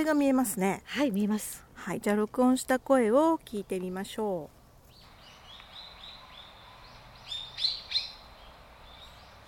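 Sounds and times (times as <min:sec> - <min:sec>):
speech: 0:00.0 - 0:04.6
bird giving high-pitched chirps: 0:04.8 - 0:09.4.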